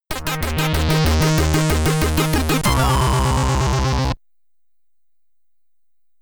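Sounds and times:
SID chip stereo chiptune music: 0:00.1 - 0:04.2.

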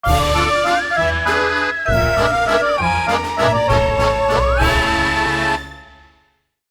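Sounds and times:
opening jingle: 0:00.1 - 0:05.8.

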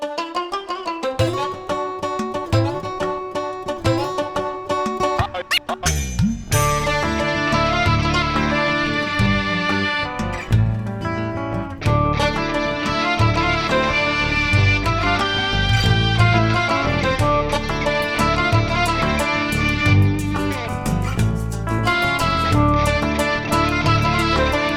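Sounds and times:
bazaar ambience: 0:00.1 - 0:24.7.

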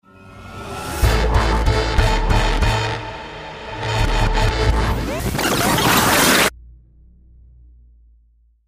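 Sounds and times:
elevator music: 0:00.1 - 0:05.5.

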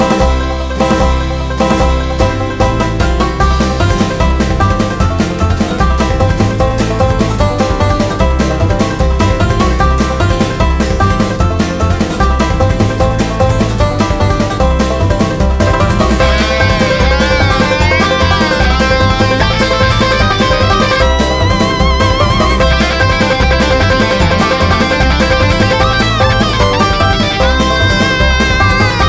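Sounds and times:
country music: 0:00.0 - 0:29.0.

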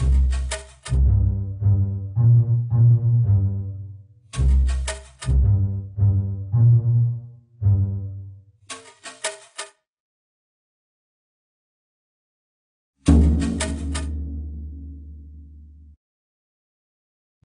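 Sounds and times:
jungle level music: 0:00.0 - 0:08.4, 0:13.1 - 0:14.5.

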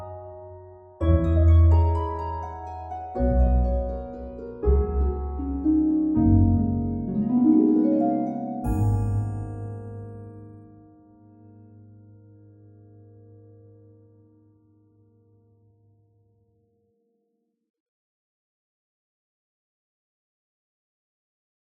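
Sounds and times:
ambient background music: 0:00.0 - 0:12.8.

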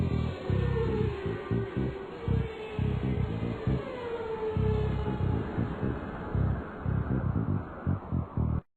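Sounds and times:
raceway ambience: 0:00.0 - 0:08.6.

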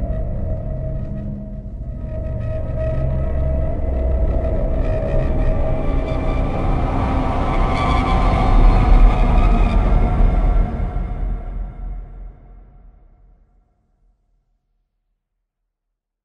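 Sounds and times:
Pizzaplex ambience: 0:00.0 - 0:13.0.

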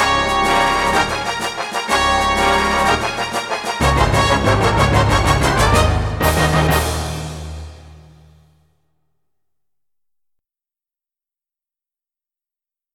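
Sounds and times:
marching steps: 0:00.0 - 0:08.5.

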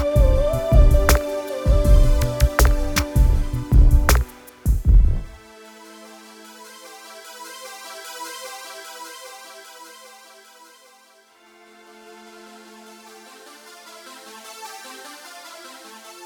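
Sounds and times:
synthetic ambience: 0:00.0 - 0:05.4.

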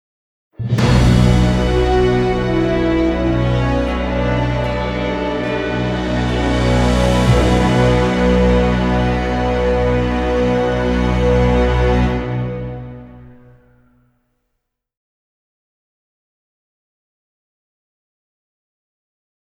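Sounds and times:
defeat jingle: 0:00.6 - 0:13.3.

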